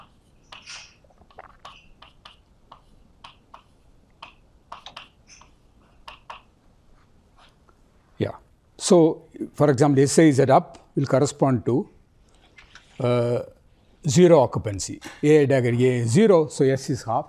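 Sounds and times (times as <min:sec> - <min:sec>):
writing taps and scratches during a physics lecture: 0:00.0 - 0:06.6
low hiss: 0:00.0 - 0:17.2
speech: 0:08.2 - 0:12.0, 0:13.0 - 0:17.2.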